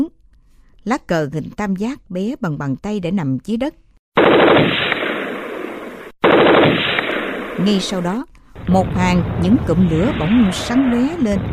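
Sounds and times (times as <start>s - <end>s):
speech: 0.8s - 4.9s, 7.6s - 11.5s
submachine gun firing: 4.2s - 8.0s.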